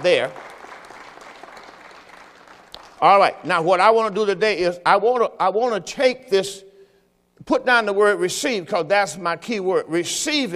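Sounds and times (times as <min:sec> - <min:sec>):
speech: 0:00.0 - 0:00.5, 0:03.0 - 0:06.7, 0:07.4 - 0:10.5
audience applauding: 0:00.0 - 0:03.3.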